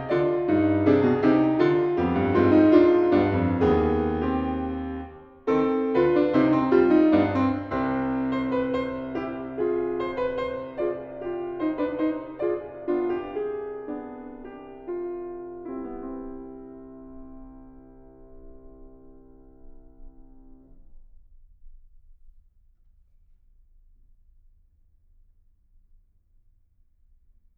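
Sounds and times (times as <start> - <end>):
piano fugue: 0.0 - 20.8.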